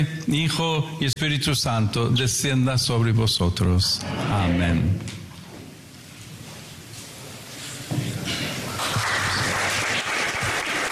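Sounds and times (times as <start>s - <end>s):
speech: 0.0s - 5.2s
crowd applause: 8.6s - 10.9s.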